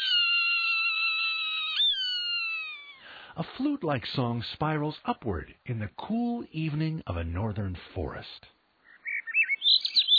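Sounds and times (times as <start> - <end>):
Swainson's hawk raspy scream: 0.0 - 3.1
speech: 3.4 - 8.6.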